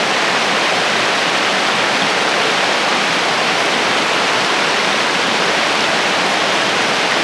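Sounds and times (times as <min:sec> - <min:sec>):
river rapids: 0:00.0 - 0:07.2.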